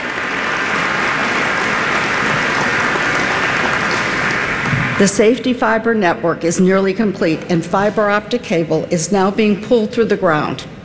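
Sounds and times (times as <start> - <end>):
audience applause for the workers building the Summit Connects fiber network: 0.0 - 5.0
speech: 5.0 - 10.8.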